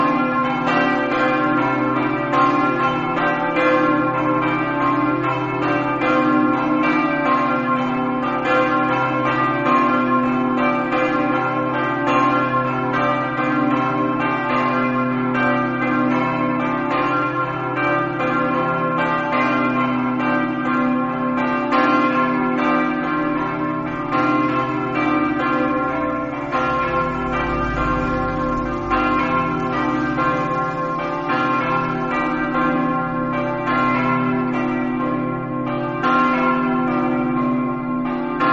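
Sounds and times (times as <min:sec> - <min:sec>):
bells ringing: 0:00.0 - 0:38.5.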